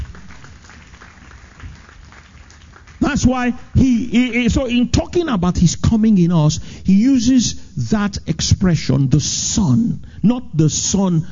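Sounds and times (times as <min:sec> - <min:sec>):
congregation clapping during a church service: 0:00.0 - 0:03.8
speech: 0:03.1 - 0:11.3.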